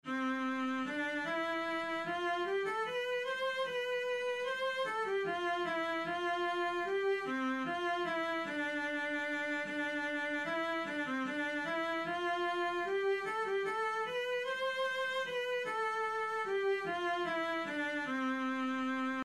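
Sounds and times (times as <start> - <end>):
viola playing a minuet: 0.0 - 19.2.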